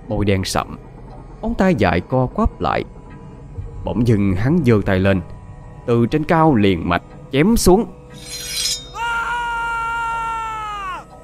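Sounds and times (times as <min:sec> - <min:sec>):
speech: 0:00.1 - 0:00.8, 0:01.4 - 0:03.0, 0:03.8 - 0:08.6
anguished scream in the night: 0:08.6 - 0:11.1.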